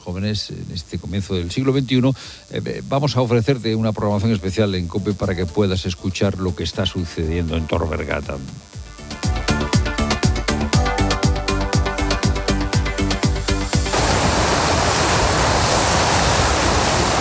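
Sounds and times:
speech: 0.1 - 8.7
rhythmic evenly pulsing percussion: 1.8 - 14.0
ocean waves on the shore of Lanzarote: 13.9 - 17.1.

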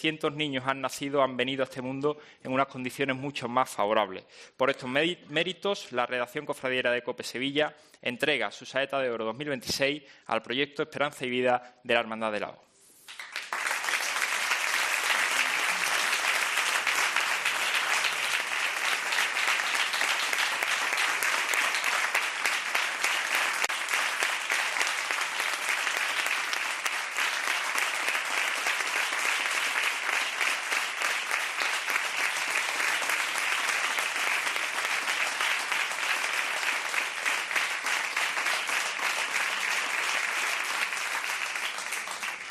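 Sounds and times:
speech: 0.0 - 13.3
applause: 13.1 - 42.4.

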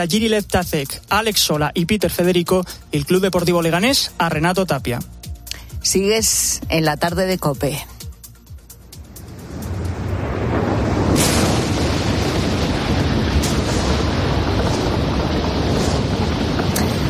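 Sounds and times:
speech: 0.0 - 5.2, 5.8 - 8.0
volcano erupting: 9.0 - 17.0.

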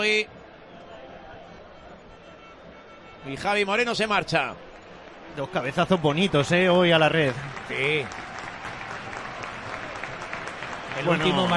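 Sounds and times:
speech: 0.0 - 0.4, 3.2 - 4.7, 5.3 - 8.3, 11.0 - 11.5
stadium crowd applause at a football match for a player leaving the pitch: 0.0 - 11.5.

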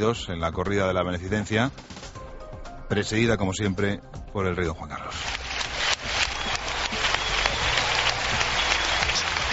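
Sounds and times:
speech: 0.0 - 2.1, 2.9 - 5.4
crowd applause in bullring: 5.2 - 9.5.

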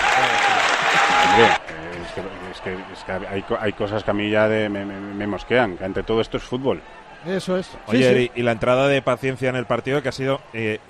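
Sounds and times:
applause: 0.0 - 2.9
speech: 1.4 - 10.8.

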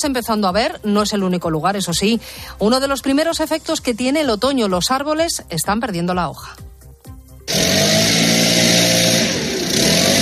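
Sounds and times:
speech: 0.0 - 6.7
leaf blowers clearing fallen autumn leaves in a city centre: 7.5 - 10.2
street sweeping machines clearing fallen autumn leaves in a city centre: 7.5 - 10.2.

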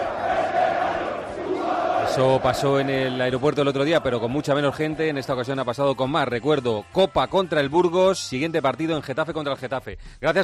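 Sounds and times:
Valencia football supporters protesting outside the Mestalla stadium: 0.0 - 5.7
speech: 2.1 - 10.4.

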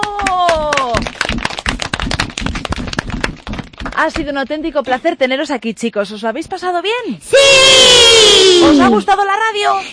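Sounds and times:
audience applause: 0.0 - 3.6
speech: 4.0 - 9.9.

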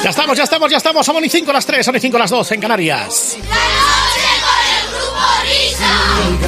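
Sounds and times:
speech: 0.1 - 4.1
boys' choir shouting the show's name in unison: 3.5 - 6.4.

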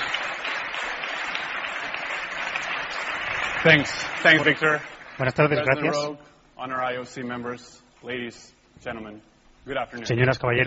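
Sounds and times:
audience applause: 0.0 - 5.8
speech: 3.6 - 10.6.

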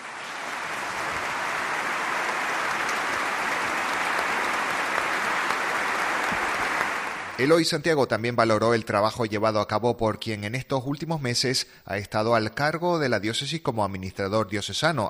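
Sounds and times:
loud applause: 0.0 - 7.7
speech: 7.4 - 15.0.

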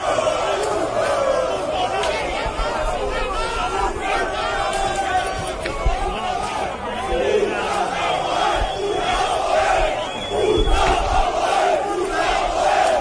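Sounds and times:
football fans clashing with riot police, shouting and yelling: 0.0 - 12.9.

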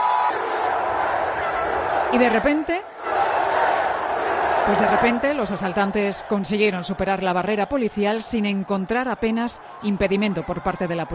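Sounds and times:
protesting crowd shouting: 0.0 - 11.1
speech: 2.1 - 3.0, 4.7 - 11.1.

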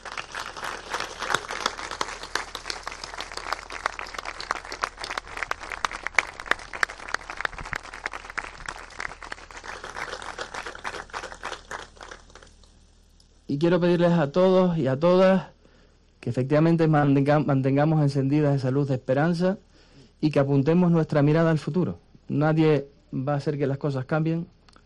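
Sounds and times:
audience applause: 0.0 - 12.6
speech: 13.5 - 15.5, 16.2 - 19.6, 20.2 - 24.6.

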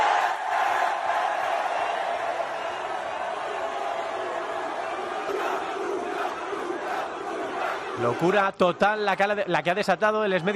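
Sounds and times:
large crowd cheering and chanting: 0.0 - 10.5
speech: 8.0 - 10.5.

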